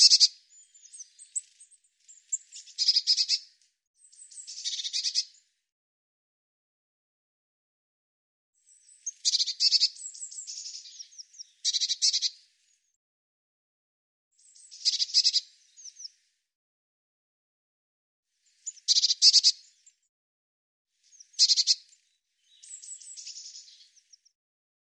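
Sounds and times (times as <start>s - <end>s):
bird song with repeated high buzzy trilled phrases: 0.0s - 5.6s, 8.6s - 13.0s, 14.4s - 16.2s, 18.4s - 20.1s, 21.0s - 24.4s.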